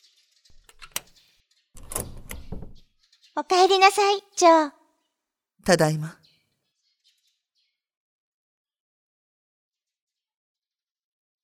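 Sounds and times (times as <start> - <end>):
door clicks and rattles: 0.6 - 1.1, 1.8 - 2.8
speech: 3.4 - 4.8, 5.6 - 6.2.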